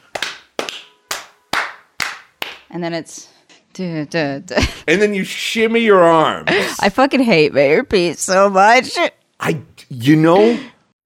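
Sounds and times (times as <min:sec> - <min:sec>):
sharp hand claps from a dance routine: 0:00.0 - 0:02.7
speech: 0:02.7 - 0:10.7.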